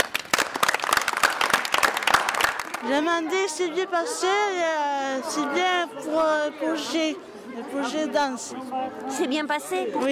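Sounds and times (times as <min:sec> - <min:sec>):
audience clapping at a school dance-project gathering: 0:00.0 - 0:03.1
speech: 0:02.8 - 0:10.1.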